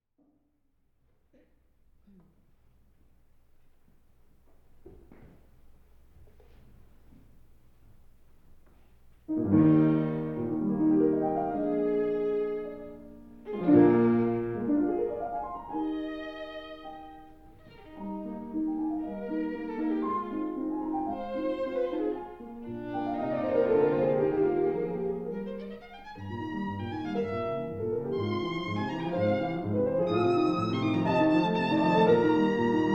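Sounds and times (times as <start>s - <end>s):
violin sonata movement: 9.3s - 32.9s.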